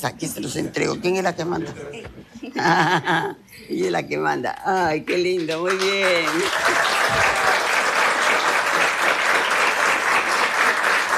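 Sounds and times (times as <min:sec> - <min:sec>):
speech: 0:00.0 - 0:07.6
laughter: 0:01.6 - 0:03.4
crowd applauding: 0:05.1 - 0:11.1.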